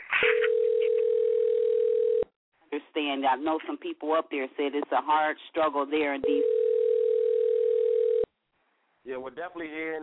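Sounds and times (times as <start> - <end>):
telephone dial tone as a phone call is placed: 0.4 - 2.3, 6.3 - 8.3
speech: 2.7 - 6.6, 9.0 - 10.0.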